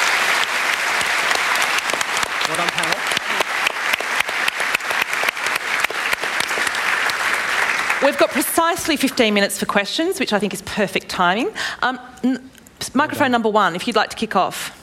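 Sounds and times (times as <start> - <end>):
audience applause: 0.0 - 8.8
speech: 8.1 - 14.8.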